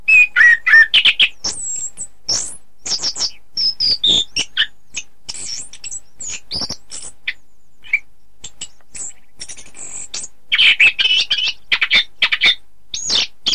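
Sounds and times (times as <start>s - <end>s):
Oriental magpie-robin singing: 0.0s - 13.5s.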